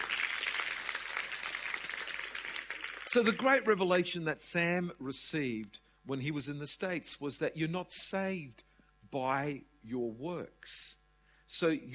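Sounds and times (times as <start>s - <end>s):
audience applause: 0.0s - 3.6s
speech: 3.1s - 11.9s.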